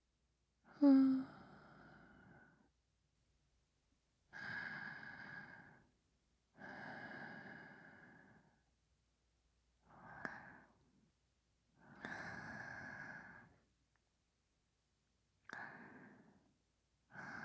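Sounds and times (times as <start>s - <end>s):
person breathing in sleep: 0.7s - 2.6s, 4.3s - 5.9s, 6.6s - 8.6s, 11.8s - 13.6s, 15.5s - 16.5s, 17.1s - 17.4s.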